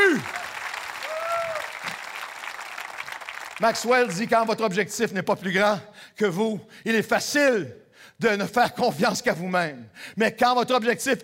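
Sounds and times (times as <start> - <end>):
audience clapping: 0.0 - 4.8
speech: 3.6 - 11.2.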